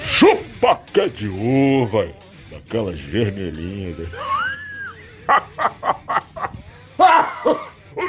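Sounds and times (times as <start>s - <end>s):
speech: 0.2s - 4.5s, 5.3s - 6.0s, 7.0s - 8.0s
laughter: 3.9s - 8.0s
person coughing: 7.0s - 8.0s.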